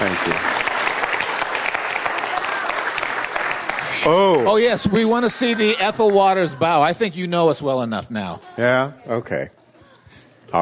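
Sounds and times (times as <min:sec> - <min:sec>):
audience applause: 0:00.0 - 0:07.1
speech: 0:04.0 - 0:09.6.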